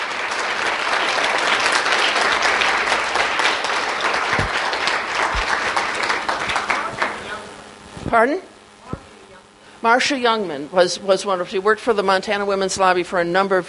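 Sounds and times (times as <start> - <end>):
audience applause: 0.0 - 7.5
speech: 8.1 - 8.5, 9.8 - 13.6.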